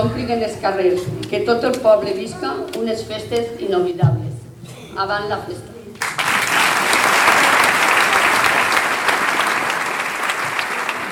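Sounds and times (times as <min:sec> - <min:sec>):
speech: 0:00.1 - 0:05.7
audience applause: 0:06.0 - 0:11.1.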